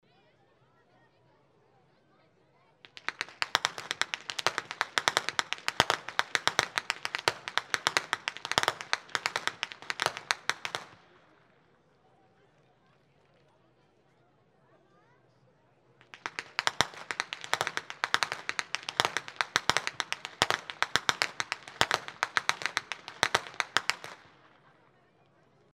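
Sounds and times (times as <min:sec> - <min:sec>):
youth whip cracking: 0:02.9 - 0:11.0, 0:16.1 - 0:24.5.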